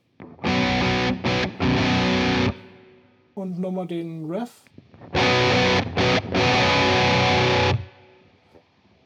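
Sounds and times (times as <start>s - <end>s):
distorted electric guitar chords through 4x12 cabinet: 0.2s - 2.9s, 4.9s - 8.0s
speech: 3.4s - 5.9s.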